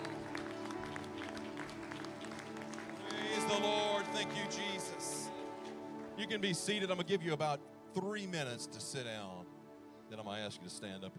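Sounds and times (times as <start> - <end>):
audience hand clapping: 0.0 - 6.5
speech: 3.5 - 5.2, 6.2 - 11.1.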